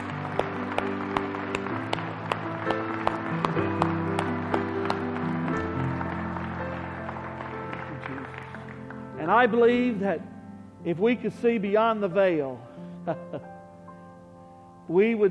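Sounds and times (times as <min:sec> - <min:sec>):
audience applauding: 0:00.0 - 0:09.6
speech: 0:09.3 - 0:13.5, 0:14.9 - 0:15.2.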